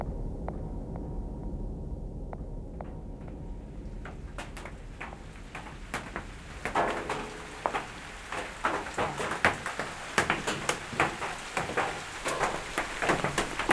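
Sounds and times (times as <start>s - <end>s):
low rumble: 0.0s - 7.6s
rain drips and taps on a surface: 3.2s - 13.7s.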